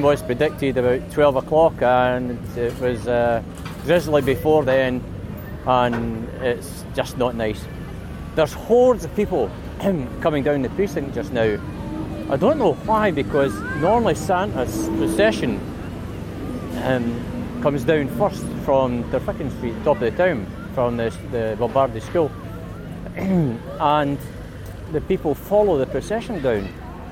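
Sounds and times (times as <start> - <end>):
Christmas street fair ambience: 0.0 - 27.1.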